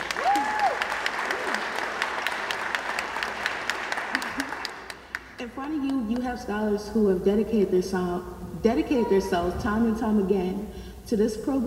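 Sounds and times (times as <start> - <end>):
audience clapping for graduates: 0.0 - 6.3
speech: 5.7 - 11.6.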